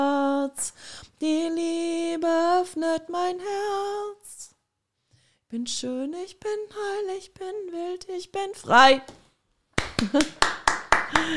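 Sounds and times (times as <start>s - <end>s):
speech: 1.2s - 1.5s, 2.2s - 4.3s, 5.5s - 9.2s, 10.0s - 10.6s
audience clapping: 9.8s - 11.3s
laughter: 10.0s - 10.4s.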